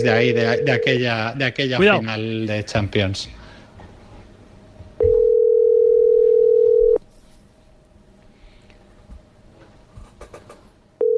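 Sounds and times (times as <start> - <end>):
telephone ringback tone: 0.0 - 1.1, 5.0 - 7.0, 11.0 - 11.1
speech: 0.0 - 3.4.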